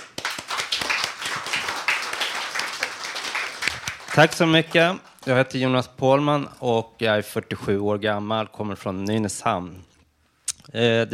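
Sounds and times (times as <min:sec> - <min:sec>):
audience applause: 0:00.0 - 0:05.3
speech: 0:04.2 - 0:09.9, 0:10.7 - 0:11.1.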